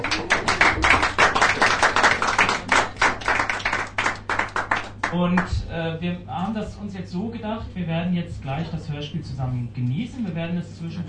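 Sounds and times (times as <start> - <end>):
audience applause: 0.0 - 5.1
speech: 5.2 - 11.0.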